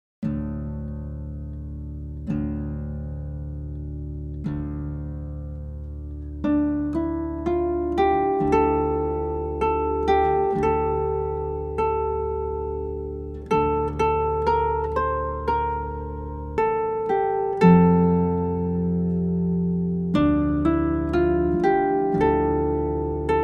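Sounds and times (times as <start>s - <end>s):
harp playing a hymn: 0.2s - 23.4s.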